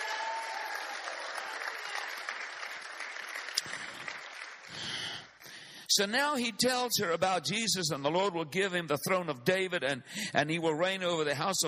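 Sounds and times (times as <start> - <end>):
audience clapping: 0.0 - 5.8
speech: 6.0 - 11.6.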